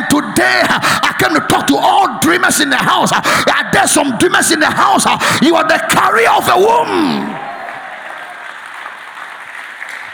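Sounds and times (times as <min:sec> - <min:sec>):
speech: 0:00.4 - 0:07.5
audience clapping: 0:06.5 - 0:10.1.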